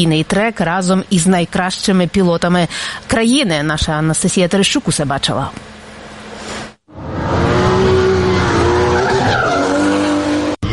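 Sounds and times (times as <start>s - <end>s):
speech: 0.0s - 5.7s
drift car tires squealing: 6.9s - 10.6s.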